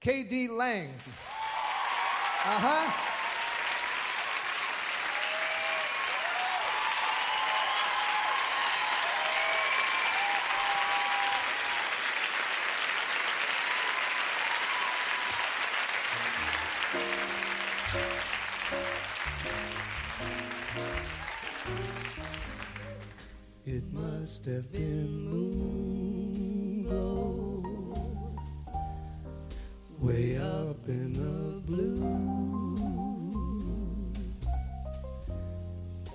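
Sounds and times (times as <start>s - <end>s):
speech: 0.0s - 1.3s, 2.4s - 3.1s, 24.4s - 26.0s
audience applause greeting a singer taking the stage: 1.0s - 23.4s
instrumental music: 16.1s - 36.1s.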